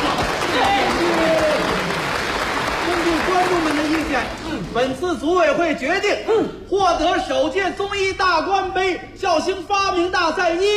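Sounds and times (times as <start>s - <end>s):
studio audience shouting: 0.0s - 3.5s
studio audience applauding: 0.0s - 4.9s
speech: 3.4s - 10.7s.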